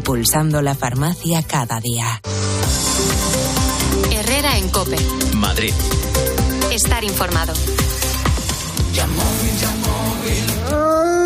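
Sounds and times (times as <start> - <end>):
speech: 0.1 - 8.0, 8.9 - 11.0
loud percussive music: 2.3 - 10.9
wolf howling: 10.6 - 11.2.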